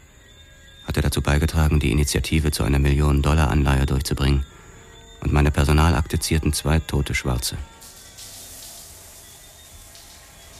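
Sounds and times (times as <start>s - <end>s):
speech: 1.1s - 4.6s, 5.2s - 7.8s
running shower: 7.7s - 10.5s.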